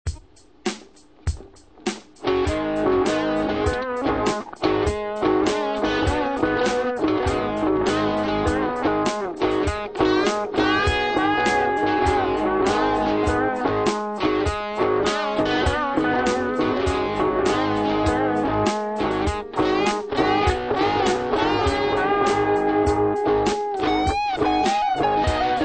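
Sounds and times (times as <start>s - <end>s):
delay effect: 2.3s - 25.6s.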